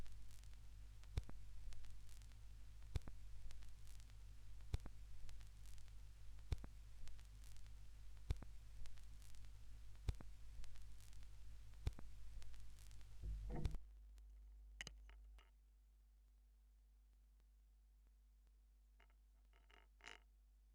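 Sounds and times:
vinyl record noise: 0.0s - 13.2s.

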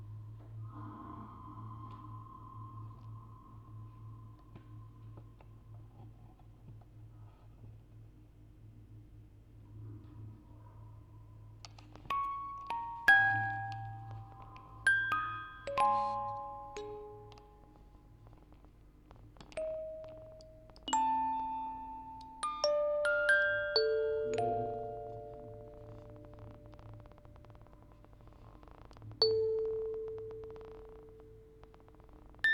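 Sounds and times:
quartet of music boxes playing: 12.1s - 18.2s, 19.4s - 28.0s, 29.1s - 32.5s.

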